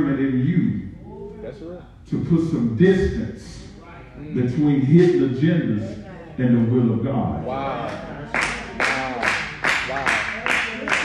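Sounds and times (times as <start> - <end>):
speech: 1.5 - 3.6, 4.2 - 8.5
audience clapping: 7.8 - 11.0.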